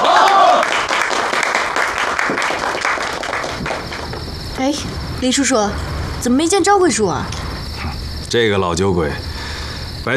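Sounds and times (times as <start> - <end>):
applause: 0.0 - 4.2
speech: 4.6 - 7.4, 8.3 - 9.3.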